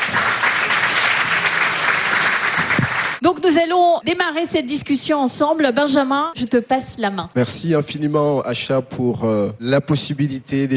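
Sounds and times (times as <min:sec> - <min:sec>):
crowd applause: 0:00.0 - 0:03.2
speech: 0:03.3 - 0:10.7.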